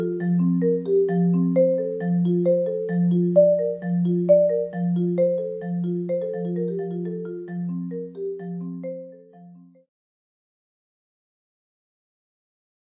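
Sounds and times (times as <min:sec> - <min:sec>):
grand march solo excerpt: 0:00.0 - 0:09.0.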